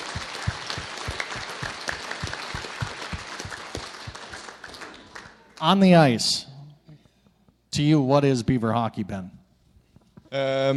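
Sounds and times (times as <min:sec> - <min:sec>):
crowd clapping: 0:00.0 - 0:05.8
speech: 0:05.6 - 0:06.5, 0:07.8 - 0:09.4, 0:10.3 - 0:10.7.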